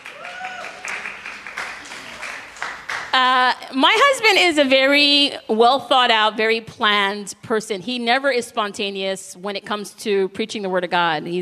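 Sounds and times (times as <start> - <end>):
voices cheering: 0.0 - 2.5
audience clapping: 0.0 - 3.4
speech: 3.2 - 11.4.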